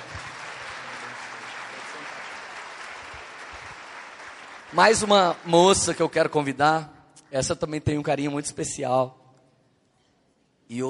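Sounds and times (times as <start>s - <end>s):
audience applause: 0.0s - 6.2s
speech: 4.7s - 9.2s, 10.7s - 10.8s.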